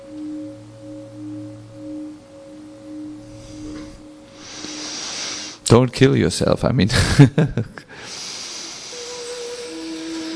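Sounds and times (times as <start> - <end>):
slow deep breath in during a breathing exercise: 3.3 - 5.6, 7.9 - 9.2
speech: 5.7 - 8.2.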